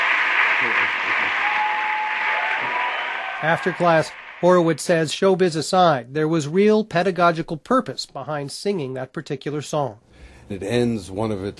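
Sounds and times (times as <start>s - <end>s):
crowd applauding: 0.0s - 4.8s
people cheering: 0.0s - 5.0s
speech: 3.4s - 11.5s.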